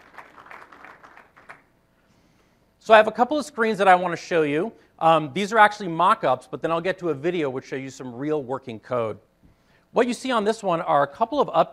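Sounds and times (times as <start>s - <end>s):
slow clapping from an audience at a software presentation: 0.0s - 1.7s
speech: 2.9s - 9.3s, 9.9s - 11.7s.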